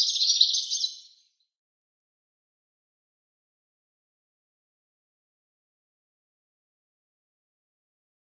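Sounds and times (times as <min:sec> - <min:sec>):
European goldfinch song of rapid high twitters: 0:00.0 - 0:01.2.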